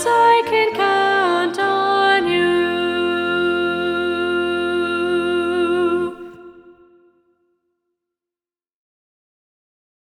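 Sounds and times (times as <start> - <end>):
soprano singing in SATB choir: 0.0 - 7.2.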